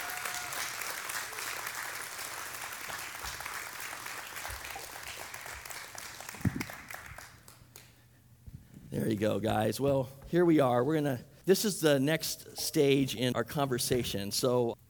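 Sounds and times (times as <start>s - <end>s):
audience applause welcoming guests at a Gold Coast event: 0.0s - 7.6s
speech: 9.0s - 14.8s.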